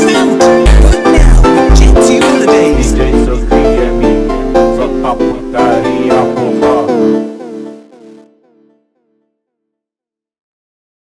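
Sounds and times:
slowed funk music: 0.0s - 7.2s.

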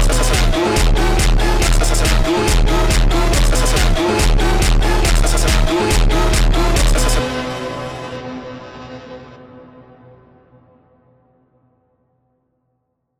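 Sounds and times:
funk music: 0.0s - 7.5s.

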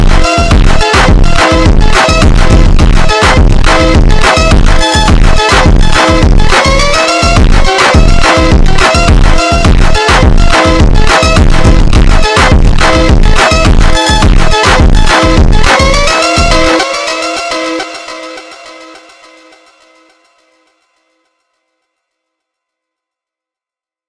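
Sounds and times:
slowed funk with reverb: 0.0s - 16.8s.

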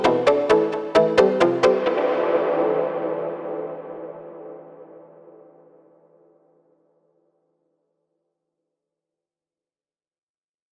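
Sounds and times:
sped up montagem music: 0.0s - 5.7s.

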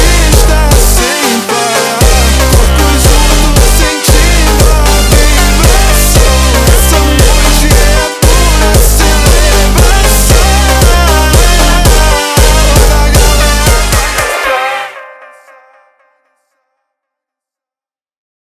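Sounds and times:
slowed jumpstyle beat: 0.0s - 14.5s.

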